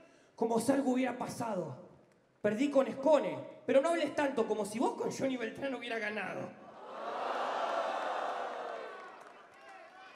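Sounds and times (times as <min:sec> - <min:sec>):
speech: 0:00.4 - 0:06.6
crowd shouting: 0:06.8 - 0:09.2.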